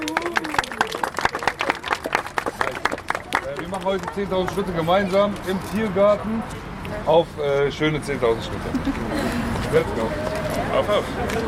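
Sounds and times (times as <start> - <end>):
audience applause: 0.0 - 4.7
speech: 3.7 - 11.4.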